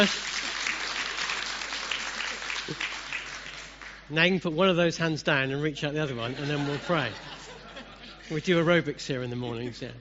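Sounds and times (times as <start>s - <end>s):
speech: 0.0s - 0.3s, 2.7s - 2.9s, 4.1s - 7.4s, 8.3s - 9.9s
audience applause: 0.0s - 4.1s
laughter: 6.2s - 8.7s.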